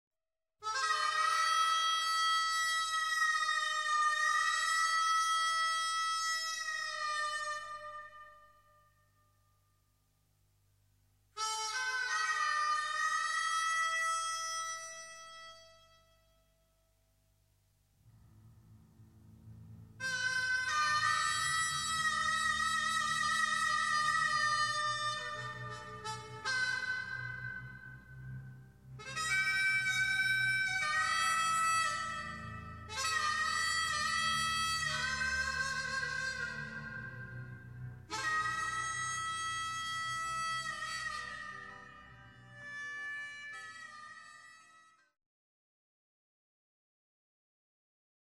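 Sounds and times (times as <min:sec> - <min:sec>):
harmonica: 0:00.6 - 0:08.2, 0:11.4 - 0:16.3, 0:20.0 - 0:45.2.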